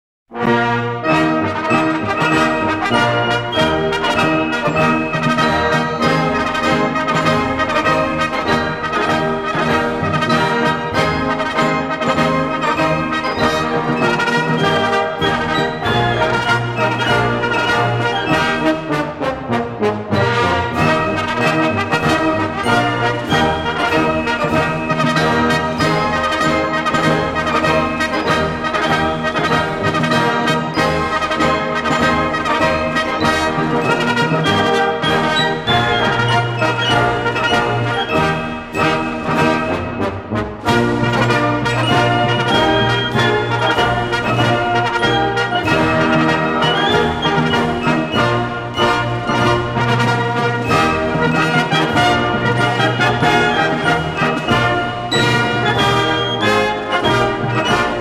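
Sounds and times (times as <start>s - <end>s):
military army march: 0.3s - 58.0s.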